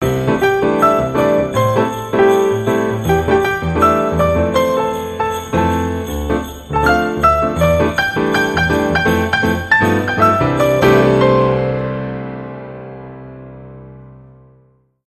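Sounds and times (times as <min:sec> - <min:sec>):
Christmas song: 0:00.0 - 0:14.4.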